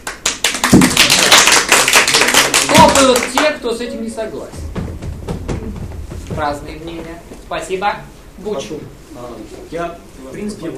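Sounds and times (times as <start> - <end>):
audience applause during a debate: 0.0 - 3.6
speech: 0.8 - 1.2, 3.0 - 4.7, 6.4 - 10.7.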